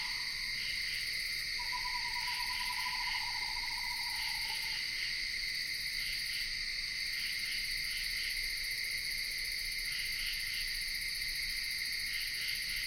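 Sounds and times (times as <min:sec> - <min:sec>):
insects in Ithaca New York: 0:00.0 - 0:12.8
screech owl calling in Ithaca New York: 0:01.6 - 0:04.8.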